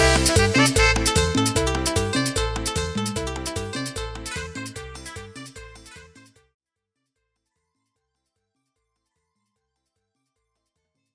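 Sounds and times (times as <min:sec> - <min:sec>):
pianos: 0:00.0 - 0:06.2.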